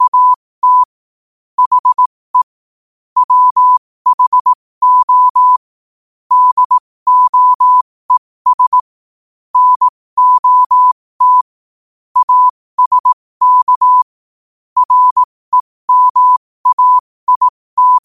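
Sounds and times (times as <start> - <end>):
morse code at 5 wpm: 0.0 - 0.9, 1.6 - 2.6, 3.2 - 5.6, 6.3 - 7.9, 8.5 - 8.9, 9.6 - 11.4, 12.2 - 14.1, 14.8 - 18.0.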